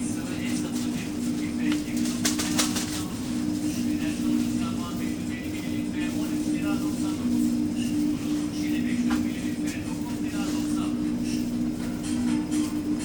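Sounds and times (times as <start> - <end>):
supermarket ambience: 0.0 - 13.0.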